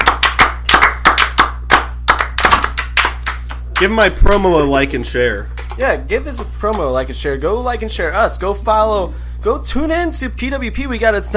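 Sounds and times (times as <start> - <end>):
people clapping: 0.0 - 4.6
speech: 3.8 - 11.3.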